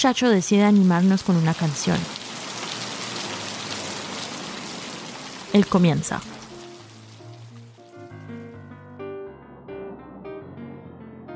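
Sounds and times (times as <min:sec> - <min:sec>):
speech: 0:00.0 - 0:02.2, 0:05.5 - 0:06.4
heavy rain during a thunderstorm: 0:00.0 - 0:08.4.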